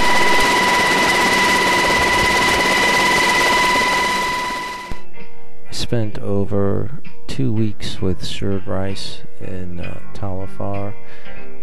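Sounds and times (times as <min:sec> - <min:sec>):
Black Hawk helicopter interior in flight: 0:00.0 - 0:05.0
speech: 0:05.9 - 0:11.4.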